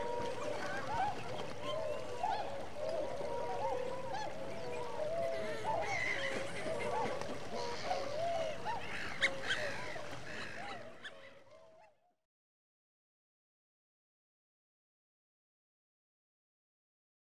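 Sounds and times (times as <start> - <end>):
winter migrant waterfowl flock chattering: 0.0 - 11.2.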